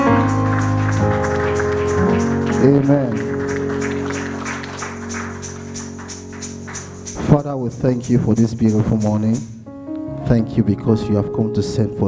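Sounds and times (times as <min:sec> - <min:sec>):
audience applause: 0:00.0 - 0:07.2
sustained keyboard chords: 0:00.0 - 0:12.0
speech: 0:02.6 - 0:03.3, 0:07.4 - 0:09.5, 0:10.3 - 0:12.0.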